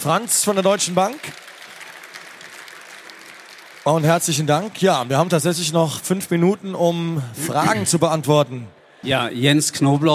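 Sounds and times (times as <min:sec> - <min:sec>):
speech: 0:00.0 - 0:01.5, 0:03.9 - 0:10.1
steady audience applause: 0:00.0 - 0:06.1.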